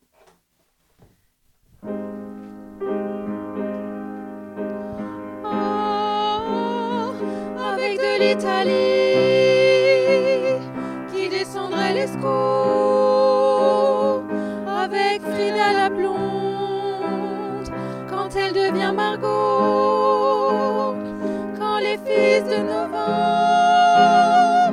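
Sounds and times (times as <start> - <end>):
women singing a verse: 5.4 - 24.7.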